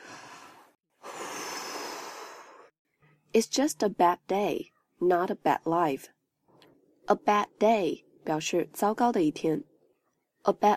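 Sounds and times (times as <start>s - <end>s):
deep breath: 0.0s - 2.8s
speech: 3.4s - 6.2s, 7.1s - 9.7s, 10.4s - 10.7s.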